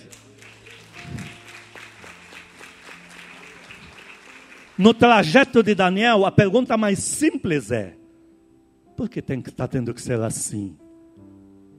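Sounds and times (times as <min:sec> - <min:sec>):
audience applauding: 0:00.0 - 0:05.8
speech: 0:04.8 - 0:08.0, 0:09.0 - 0:10.8.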